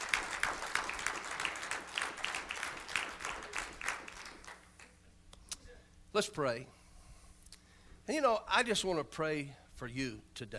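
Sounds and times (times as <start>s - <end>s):
crowd applauding: 0.0s - 5.0s
speech: 6.2s - 6.8s, 8.1s - 10.5s.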